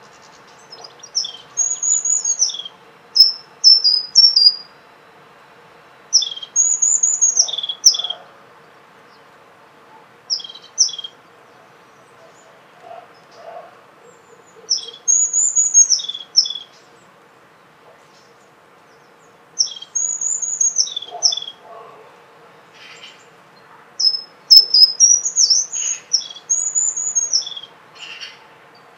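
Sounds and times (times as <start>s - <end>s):
European crested tit high trilled call: 0.0s - 4.7s, 6.1s - 8.3s, 10.3s - 11.2s, 14.2s - 16.8s, 19.6s - 21.6s, 24.0s - 28.4s
faint low background noise: 0.0s - 28.9s.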